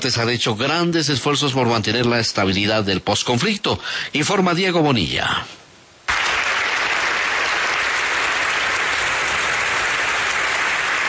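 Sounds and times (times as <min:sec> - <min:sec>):
speech: 0:00.0 - 0:05.6
large audience applauding in the Teatro Colón theatre: 0:06.1 - 0:11.0.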